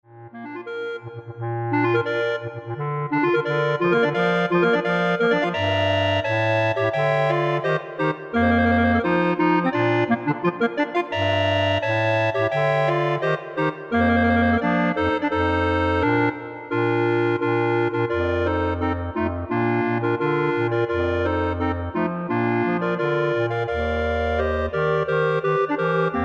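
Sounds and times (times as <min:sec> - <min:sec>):
clarinet ensemble playing: 0:00.4 - 0:26.2.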